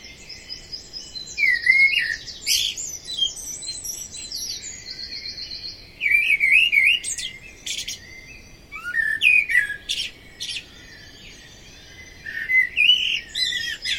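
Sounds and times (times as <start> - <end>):
common blackbird singing fluty warbling phrases: 0.0 - 13.9.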